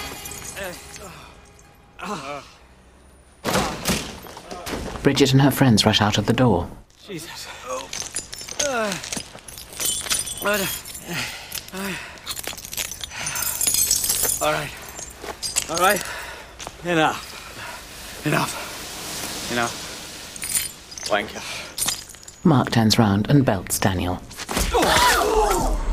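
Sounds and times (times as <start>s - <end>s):
glass window shattering as two men crash through: 0.0s - 1.8s, 3.4s - 5.0s, 7.7s - 22.5s
speech: 0.6s - 1.3s, 2.0s - 2.6s, 5.0s - 7.7s, 10.4s - 12.1s, 14.4s - 14.8s, 15.7s - 16.2s, 16.8s - 17.3s, 18.2s - 18.6s, 19.5s - 19.8s, 21.1s - 21.6s, 22.4s - 25.8s.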